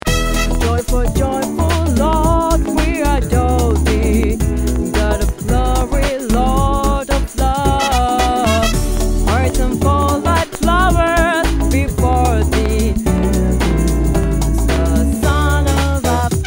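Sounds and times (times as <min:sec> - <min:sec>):
joyful tenor: 0:00.0 - 0:15.5.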